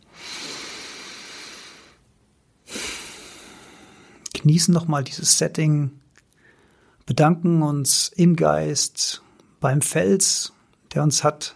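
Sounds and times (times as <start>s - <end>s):
deep breath in and out: 0.0s - 4.2s, 6.4s - 7.0s
speech: 4.4s - 6.0s, 7.1s - 11.5s.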